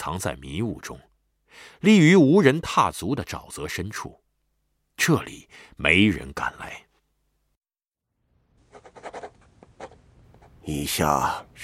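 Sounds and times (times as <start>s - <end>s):
speech: 0.0s - 4.2s, 5.0s - 6.8s, 10.6s - 11.6s
quill pen scratching on parchment: 8.7s - 10.6s.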